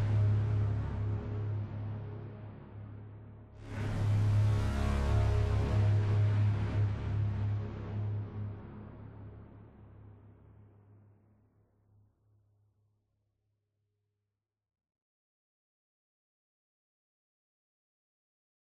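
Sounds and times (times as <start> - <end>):
music: 0.0 - 13.0.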